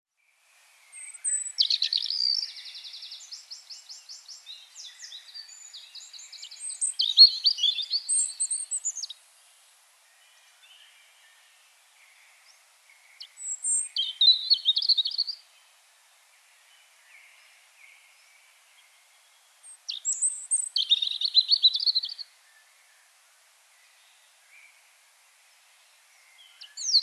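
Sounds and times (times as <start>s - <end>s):
European robin singing: 0.8s - 15.8s, 16.4s - 23.1s, 26.1s - 27.0s.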